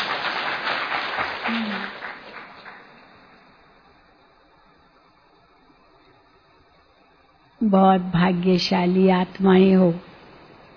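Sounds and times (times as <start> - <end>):
audience clapping: 0.0 - 3.4
speech: 1.5 - 1.9, 7.6 - 10.1.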